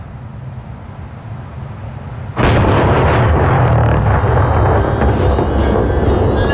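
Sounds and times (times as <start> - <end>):
explosives detonating: 2.4 - 6.5
heavy rumble: 2.4 - 6.5.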